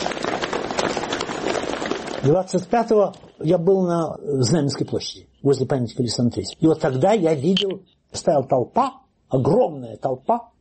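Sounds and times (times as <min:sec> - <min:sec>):
clatter of horse hooves: 0:00.0 - 0:03.4
speech: 0:02.2 - 0:10.5.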